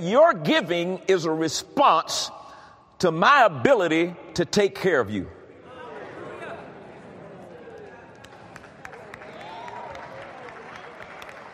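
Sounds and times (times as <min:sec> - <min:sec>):
speech: 0:00.0 - 0:02.4, 0:03.0 - 0:05.4
church audience applauding: 0:07.7 - 0:11.5.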